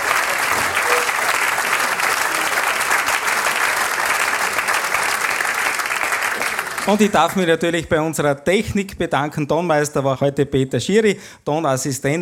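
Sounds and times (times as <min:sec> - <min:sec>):
audience applause: 0:00.0 - 0:07.4
speech: 0:06.9 - 0:12.1.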